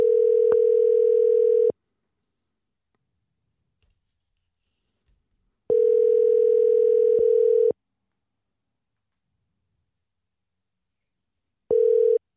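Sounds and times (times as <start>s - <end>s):
telephone ringback tone: 0.0s - 1.7s, 5.7s - 7.7s, 11.7s - 12.2s.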